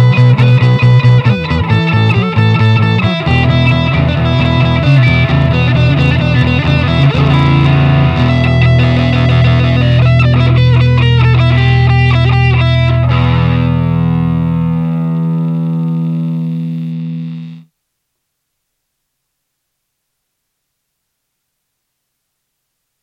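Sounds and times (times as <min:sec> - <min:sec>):
rock and roll music: 0:00.0 - 0:17.6.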